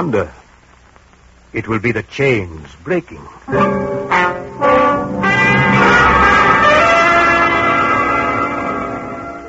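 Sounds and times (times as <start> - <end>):
speech: 0.0 - 0.4, 1.5 - 4.9
bell striking the hour: 3.5 - 9.4.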